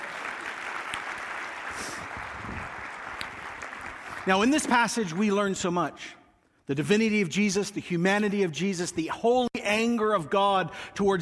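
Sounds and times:
audience applause: 0:00.0 - 0:05.2
speech: 0:04.2 - 0:11.1.

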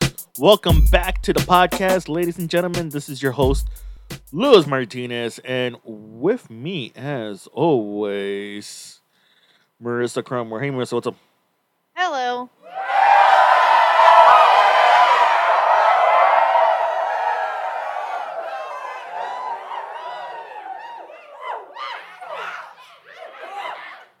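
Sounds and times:
speech: 0:00.4 - 0:09.0, 0:09.8 - 0:11.3, 0:12.0 - 0:12.8
studio audience cheering: 0:01.4 - 0:02.3, 0:12.6 - 0:24.1.

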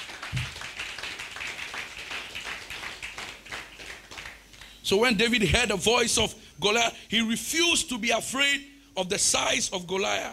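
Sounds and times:
audience clapping: 0:00.0 - 0:04.8
speech: 0:04.9 - 0:10.3.

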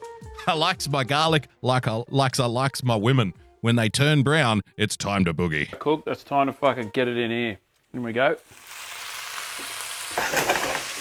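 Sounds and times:
speech: 0:00.5 - 0:08.6
pasta frying in a pan: 0:08.4 - 0:10.9.

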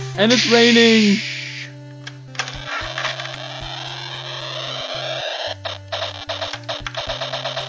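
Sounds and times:
speech: 0:00.2 - 0:01.3
toy jet fighter electronic sound effect drone: 0:00.2 - 0:01.8, 0:02.4 - 0:07.6
clicks: 0:01.9 - 0:07.6.

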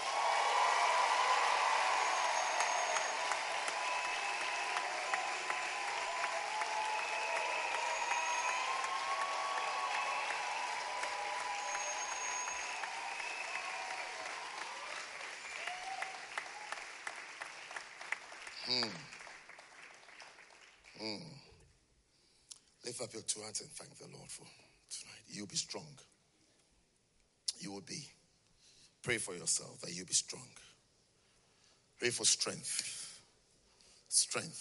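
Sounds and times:
audience clapping: 0:00.0 - 0:21.0
speech: 0:18.7 - 0:19.1, 0:21.0 - 0:21.4, 0:22.9 - 0:24.7, 0:25.3 - 0:26.2, 0:27.6 - 0:28.2, 0:29.0 - 0:30.7, 0:32.0 - 0:33.0, 0:34.1 - 0:34.5.

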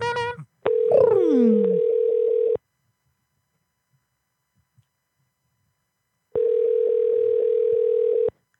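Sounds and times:
brief voice: 0:00.0 - 0:01.8
unanswered telephone ringback tones: 0:00.7 - 0:02.6, 0:06.4 - 0:08.3.

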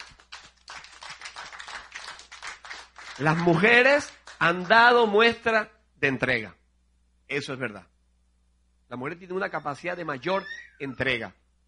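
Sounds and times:
audience applause: 0:00.0 - 0:04.4
speech: 0:03.2 - 0:06.6, 0:07.3 - 0:07.9, 0:08.9 - 0:11.4.

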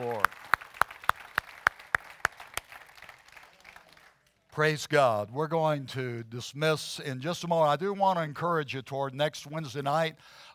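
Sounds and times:
audience clapping: 0:00.0 - 0:04.5
speech: 0:04.6 - 0:10.5.

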